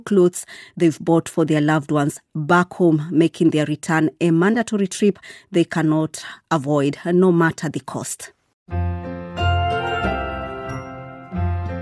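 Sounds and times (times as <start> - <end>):
speech: 0.0 - 9.0
Christmas bells ringing: 9.4 - 11.8.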